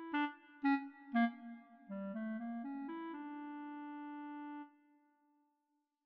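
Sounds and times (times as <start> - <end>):
melodica: 0.1 - 4.6.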